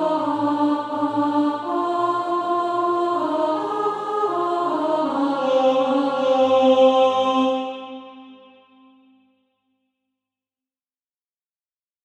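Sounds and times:
alto voice singing SATB practice music: 0:00.0 - 0:09.1.

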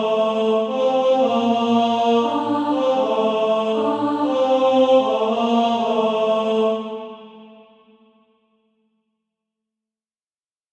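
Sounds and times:
tenor singing: 0:00.0 - 0:07.6.

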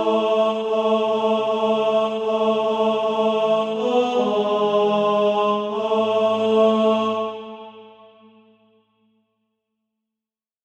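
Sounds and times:
tenor voice singing SATB practice music: 0:00.0 - 0:08.0.

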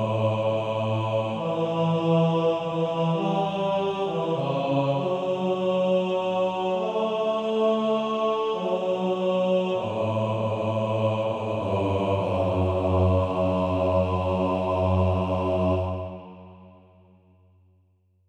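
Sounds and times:
male choir bass voices singing: 0:00.0 - 0:16.8.

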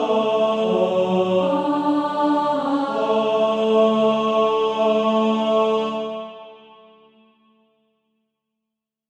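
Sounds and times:
male choir singing: 0:00.0 - 0:06.9.

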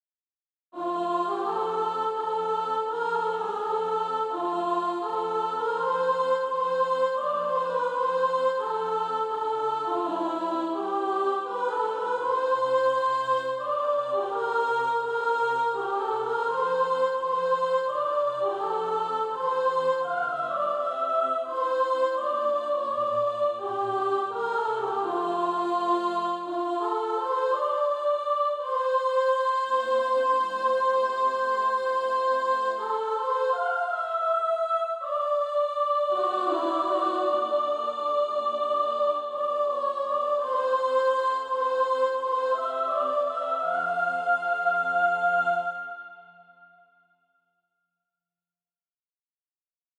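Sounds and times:
soprano singing SATB practice music: 0:00.8 - 0:46.2.

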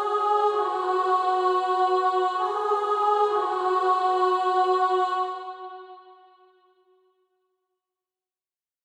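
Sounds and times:
female choir singing: 0:00.0 - 0:06.5.

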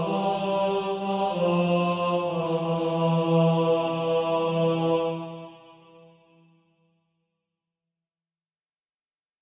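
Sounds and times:
tenor voice singing SATB practice music: 0:00.0 - 0:06.0.

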